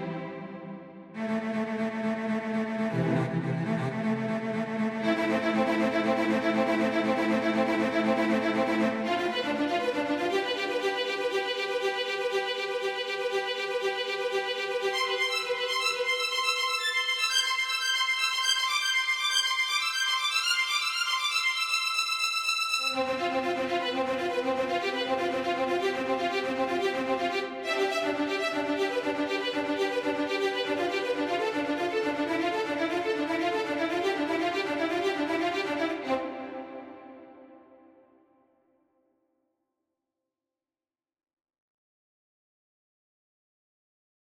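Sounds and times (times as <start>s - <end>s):
studio string instruments: 0.0s - 38.0s.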